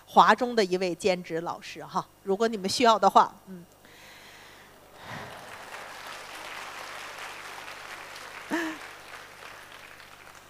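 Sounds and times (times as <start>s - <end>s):
speech: 0.2s - 3.8s
audience applause: 4.9s - 10.4s.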